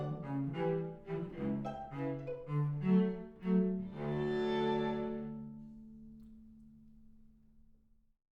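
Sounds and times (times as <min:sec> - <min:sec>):
violin: 0:00.0 - 0:06.4.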